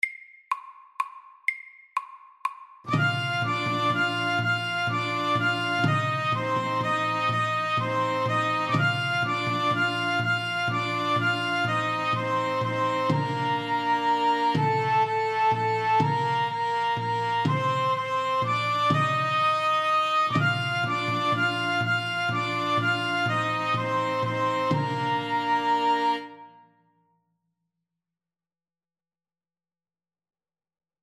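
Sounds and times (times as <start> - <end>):
Irish melody: 2.9 - 26.6.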